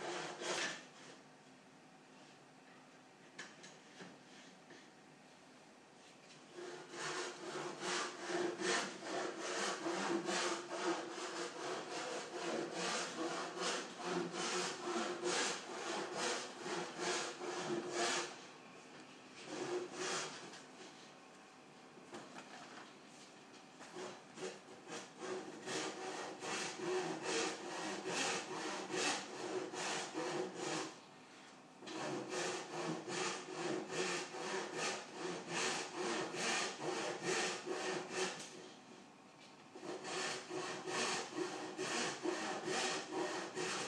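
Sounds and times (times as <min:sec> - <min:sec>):
quiet morning ambience in the prototyping lab: 0:00.1 - 0:43.8.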